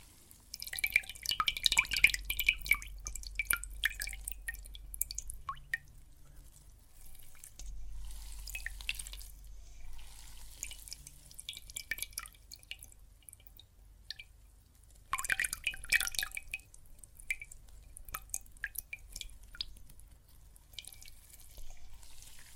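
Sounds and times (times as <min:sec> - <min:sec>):
soap foam: 0:00.0 - 0:00.8, 0:06.1 - 0:12.2, 0:19.0 - 0:22.5
water: 0:00.0 - 0:22.5.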